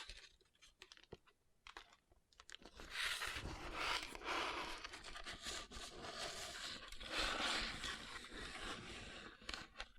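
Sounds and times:
fingers rubbing over rhinestone-covered palms: 2.8 - 9.5.

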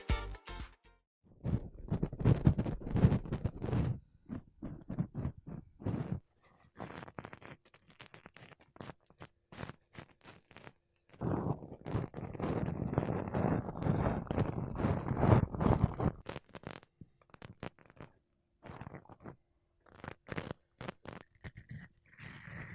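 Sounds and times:
makeup brushes rubbed over a microphone: 1.4 - 18.0, 18.6 - 22.7.

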